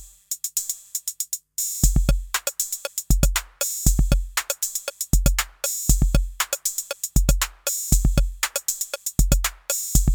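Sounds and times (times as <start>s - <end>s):
TT-606 drum machine beat: 2.0s - 10.1s.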